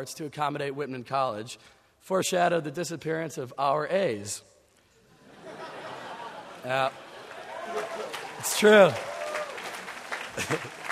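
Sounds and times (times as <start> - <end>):
speech: 0.0 - 4.5, 6.6 - 7.0, 7.7 - 9.1, 10.4 - 10.8
laughter: 5.2 - 8.9, 10.0 - 10.8
audience applause: 6.2 - 10.8.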